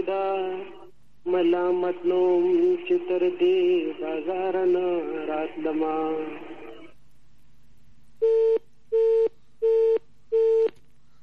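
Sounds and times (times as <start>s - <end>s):
speech: 0.1s - 6.5s
telephone busy tone after a call is cut off: 8.2s - 10.8s.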